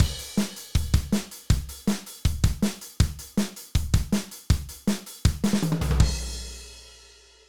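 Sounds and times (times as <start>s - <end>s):
kick drum: 0.0s - 1.7s, 2.3s - 6.2s.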